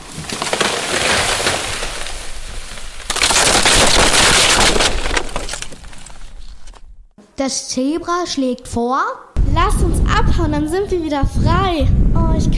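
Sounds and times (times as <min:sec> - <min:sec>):
uprooted tree crashing onto fence: 0:00.0 - 0:06.9
speech: 0:07.4 - 0:12.5.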